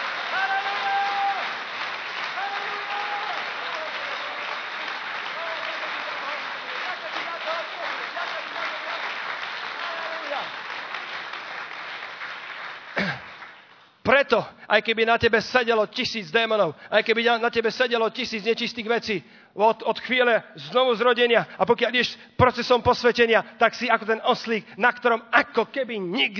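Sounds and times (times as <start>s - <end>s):
audience applause: 0.0s - 13.8s
speech: 14.2s - 26.3s.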